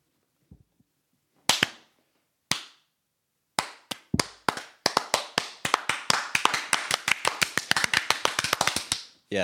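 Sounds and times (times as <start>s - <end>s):
slow clap: 1.4s - 1.9s, 2.5s - 2.9s, 3.6s - 9.1s.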